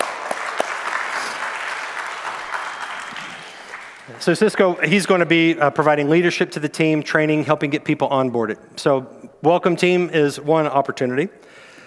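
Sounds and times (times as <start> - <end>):
audience applause: 0.0 - 5.3
speech: 4.1 - 11.5.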